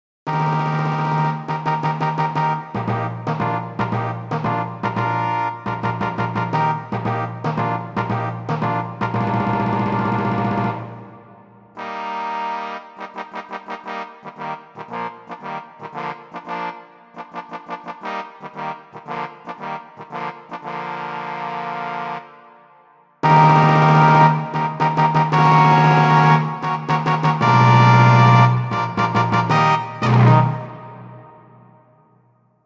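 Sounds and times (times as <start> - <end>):
royal brass fanfare: 0.3 - 22.6, 23.2 - 31.9.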